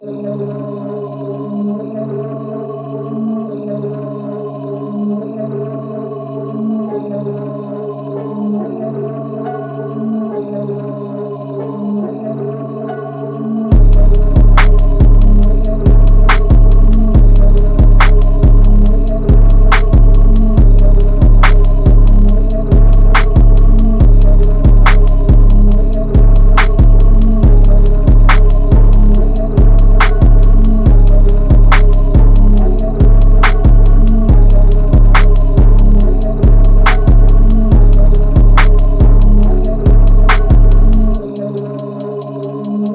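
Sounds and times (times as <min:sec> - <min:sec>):
music beat: 0:13.7 - 0:42.9.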